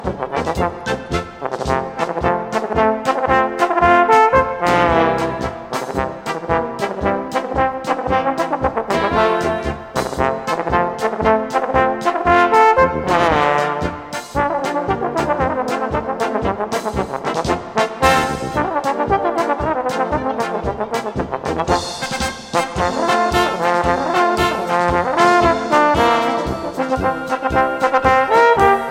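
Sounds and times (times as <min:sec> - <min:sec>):
Bavarian polka music: 0:00.0 - 0:28.8.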